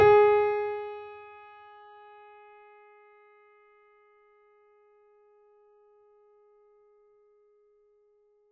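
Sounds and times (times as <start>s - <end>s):
mini grand piano: 0.0s - 1.6s.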